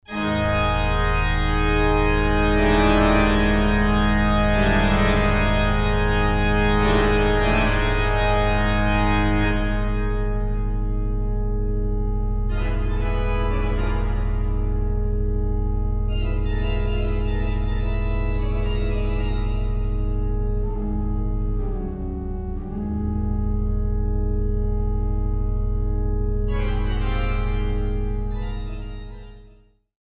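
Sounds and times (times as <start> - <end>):
pastoral drone: 0.1 - 29.5.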